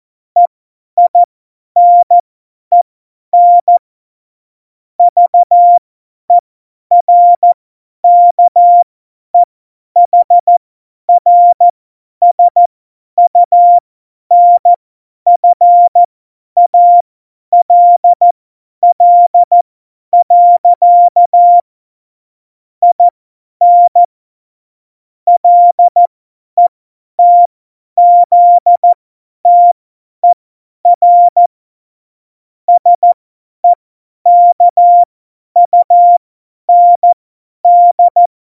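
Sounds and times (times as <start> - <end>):
CW Morse code beeps: 0.4 - 2.8, 3.4 - 3.8, 5.0 - 8.8, 9.4 - 10.6, 11.2 - 12.7, 13.3 - 19.6, 20.2 - 21.6, 22.8 - 24.1, 25.3 - 31.5, 32.7 - 38.3.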